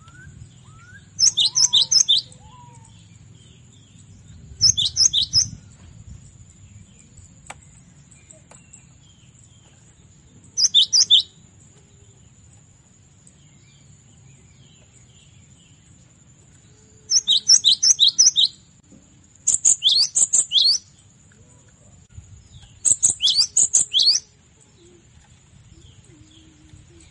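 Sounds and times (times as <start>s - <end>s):
cinereous tit chirping song: 0.0s - 3.1s, 4.6s - 5.6s, 10.6s - 11.4s, 17.1s - 18.6s, 19.5s - 20.9s, 22.5s - 25.0s.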